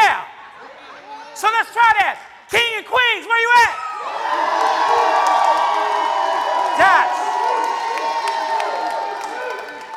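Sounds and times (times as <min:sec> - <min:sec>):
speech: 0:01.4 - 0:04.4
shouts and whoops: 0:03.5 - 0:09.9
crowd roaring and cheering: 0:03.7 - 0:09.9.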